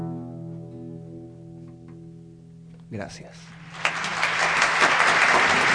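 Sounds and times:
speech: 3.0s - 3.6s
audience applause: 3.6s - 5.7s.

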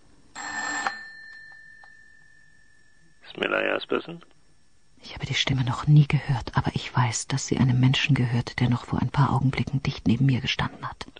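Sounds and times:
telephone bell ringing: 0.3s - 3.8s
high metallic tone: 0.3s - 6.8s
speech: 3.6s - 4.4s, 5.2s - 11.1s.

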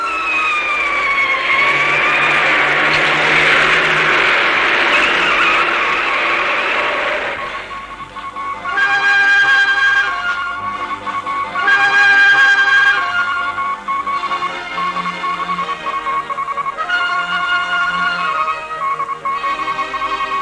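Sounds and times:
police car arriving: 0.0s - 20.3s.

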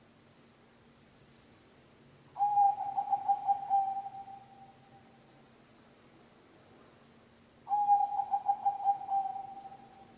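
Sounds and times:
zebra dove cooing: 2.4s - 4.7s, 7.7s - 10.1s.

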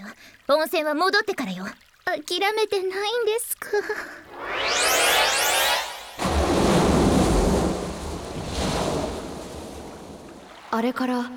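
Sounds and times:
speech: 0.5s - 4.9s, 10.7s - 11.3s
heavy rush of churning water: 6.2s - 11.0s
ocean waves washing around a boat drifting on the wide open sea: 6.2s - 11.3s.

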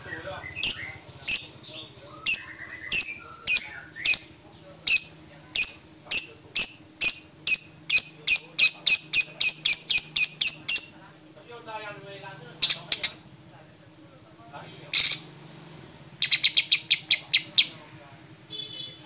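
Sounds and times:
lovebird piercing squeaks: 0.0s - 11.0s, 12.6s - 13.2s, 14.9s - 15.3s, 16.2s - 17.8s
low chatter: 0.0s - 19.0s.

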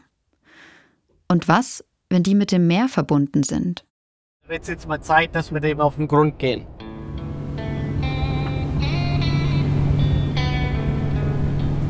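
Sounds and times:
speech: 1.3s - 3.9s, 4.5s - 6.8s
motorboat roaring past on a lake: 4.5s - 11.8s.

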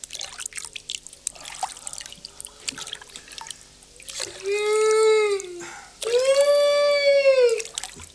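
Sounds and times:
Orinoco River water trickling and dripping: 0.0s - 6.5s, 7.4s - 8.1s.

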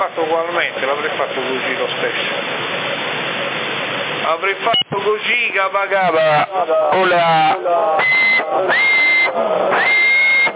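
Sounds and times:
speech: 0.1s - 3.3s, 4.2s - 10.0s
voice over narrow-band CB radio: 4.7s - 9.8s
person whistling into CB radio microphone: 8.0s - 10.5s.

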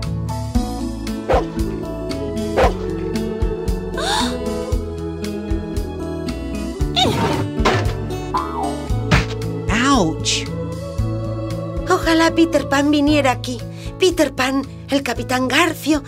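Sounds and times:
music with sustained tones: 0.1s - 13.9s
large female Newfoundland dog barking: 2.6s - 2.8s
speech: 12.3s - 16.0s.

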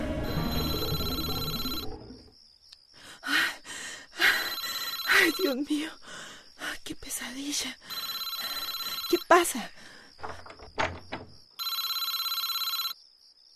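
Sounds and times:
telephone ringing with electronic trill: 0.2s - 2.0s, 4.4s - 5.6s, 7.9s - 9.3s, 11.6s - 13.0s
speech: 5.2s - 6.1s, 6.9s - 8.0s, 9.3s - 10.4s.

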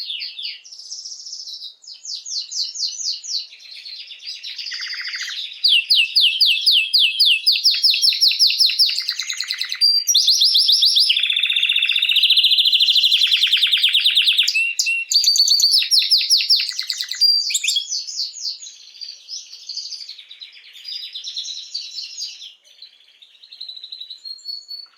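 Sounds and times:
canary trilling: 4.0s - 18.3s.

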